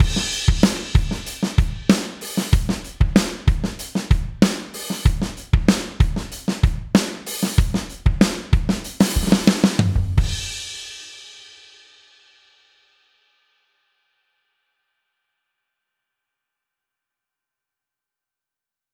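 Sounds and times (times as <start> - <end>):
drums: 0.0 - 13.0.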